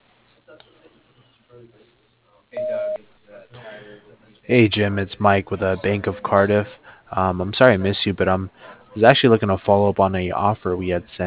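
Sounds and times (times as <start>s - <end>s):
speech: 1.5s - 2.9s, 3.9s - 11.2s
faint phone-line noise and murmur: 2.6s - 3.0s
voicemail beep: 2.6s - 3.0s.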